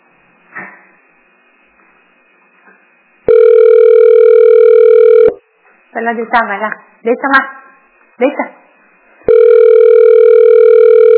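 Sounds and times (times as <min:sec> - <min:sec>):
telephone ringback tone while waiting for an answer: 0:03.3 - 0:05.4, 0:09.3 - 0:11.1
speech: 0:06.0 - 0:07.6.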